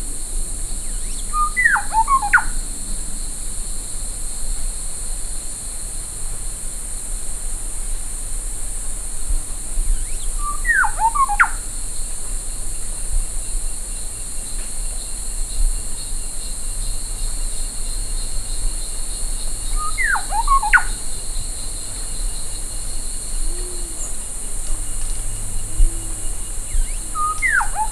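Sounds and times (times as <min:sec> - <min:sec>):
background hiss: 0:00.0 - 0:27.9
bird whistling: 0:01.3 - 0:02.5, 0:10.4 - 0:11.6, 0:19.8 - 0:21.0, 0:25.6 - 0:27.9
soft low tones: 0:23.3 - 0:27.4.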